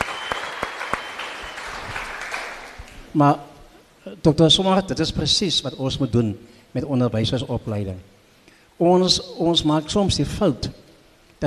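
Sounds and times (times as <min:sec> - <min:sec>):
group of students applauding themselves: 0:00.0 - 0:03.1
speech: 0:03.1 - 0:08.1, 0:08.8 - 0:10.8.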